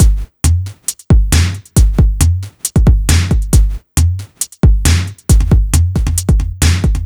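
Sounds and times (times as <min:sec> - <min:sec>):
drum loops: 0:00.0 - 0:07.0.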